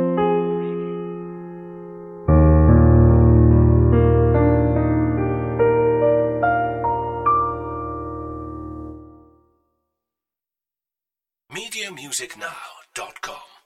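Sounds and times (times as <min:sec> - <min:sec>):
solo piano: 0:00.0 - 0:09.6.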